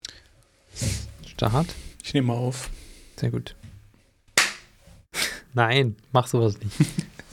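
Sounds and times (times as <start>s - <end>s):
speech: 1.4s - 3.7s, 5.6s - 7.3s
hand clapping: 4.4s - 4.7s.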